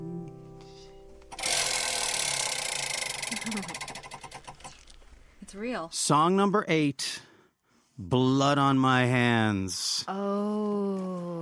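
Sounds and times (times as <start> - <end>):
spinning prize wheel called the Wheel of Eight ratcheting: 1.3 - 5.0
speech: 5.5 - 7.3, 8.0 - 11.3.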